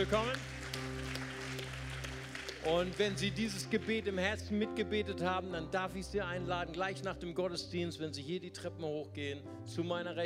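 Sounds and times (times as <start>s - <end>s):
speech: 0.0s - 0.8s, 2.6s - 10.2s
audience applause: 0.0s - 4.1s.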